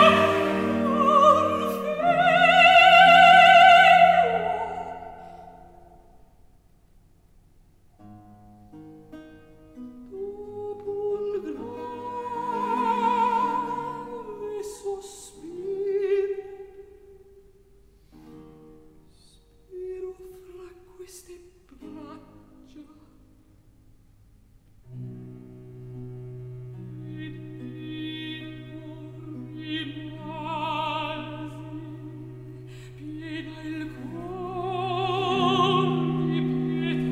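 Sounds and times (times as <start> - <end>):
dialogue sung in recitative: 0.0 - 5.3, 10.2 - 16.7, 27.1 - 37.1.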